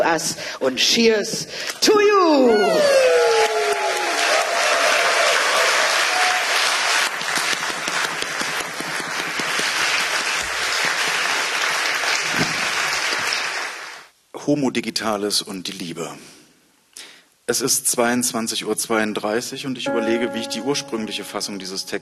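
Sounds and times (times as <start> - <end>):
speech: 0.0 - 3.2, 14.5 - 16.4, 17.5 - 22.0
audience applause: 2.7 - 14.1.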